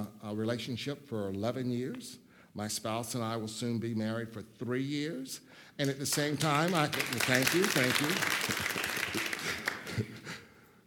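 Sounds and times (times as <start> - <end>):
speech: 0.3 - 8.9
audience applause: 6.2 - 10.2.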